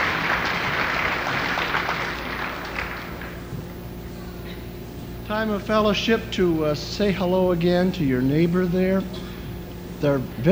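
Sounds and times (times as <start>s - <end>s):
congregation applauding after the last chorus of a church song: 0.0s - 3.7s
speech: 5.3s - 9.3s, 10.0s - 10.4s.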